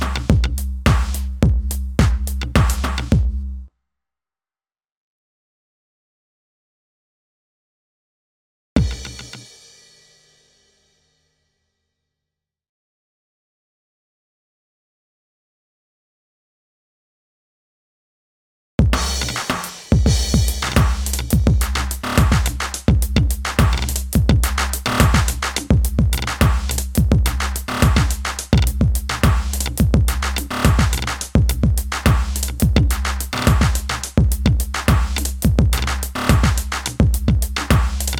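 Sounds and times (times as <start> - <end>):
drums and percussion: 0.0 - 3.4, 8.8 - 10.8, 18.8 - 38.1.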